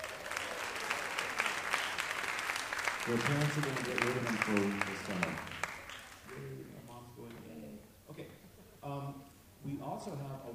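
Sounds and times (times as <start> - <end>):
audience applauding school jazz students at a music program event: 0.0 - 6.6
speech: 3.1 - 5.6, 10.0 - 10.5.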